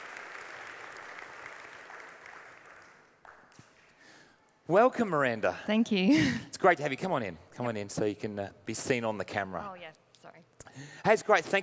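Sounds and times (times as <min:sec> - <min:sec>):
audience applause at a morning faith gathering: 0:00.0 - 0:03.6
speech: 0:04.7 - 0:10.0, 0:10.8 - 0:11.6.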